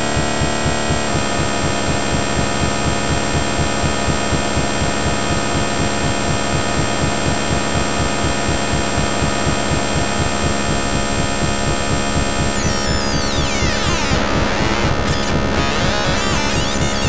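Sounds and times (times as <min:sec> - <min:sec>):
noise: 0:00.0 - 0:17.0.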